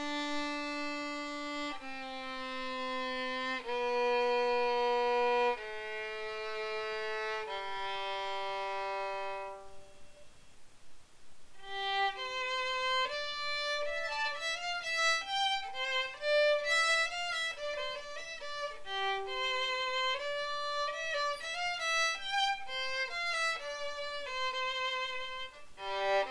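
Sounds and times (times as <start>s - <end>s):
German Stradivarius copy violin: 0.0s - 10.3s, 11.6s - 26.2s.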